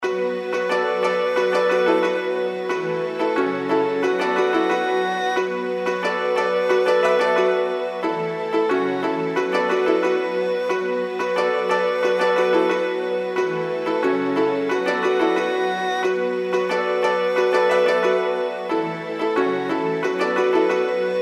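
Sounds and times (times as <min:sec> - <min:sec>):
intro background music: 0:00.0 - 0:21.2.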